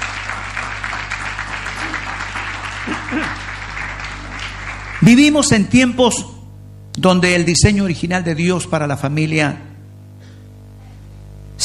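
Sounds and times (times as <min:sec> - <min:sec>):
audience applauding: 0:00.0 - 0:05.5
speech: 0:02.9 - 0:03.4, 0:05.0 - 0:06.3, 0:07.0 - 0:09.7.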